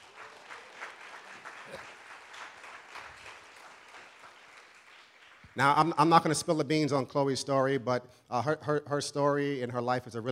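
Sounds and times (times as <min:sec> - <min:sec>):
audience applause in a large room: 0:00.0 - 0:05.7
speech: 0:05.6 - 0:10.3.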